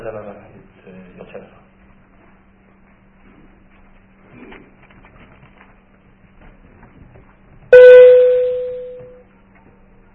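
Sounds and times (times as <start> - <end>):
faint low hum: 0.0 - 10.1
electronic alarm tone: 7.7 - 9.2.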